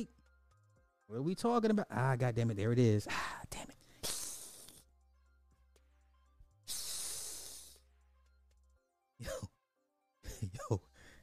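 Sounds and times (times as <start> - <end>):
speech: 0.0 - 0.2, 1.1 - 3.6
person hissing like a snake: 4.0 - 4.8, 6.7 - 7.8.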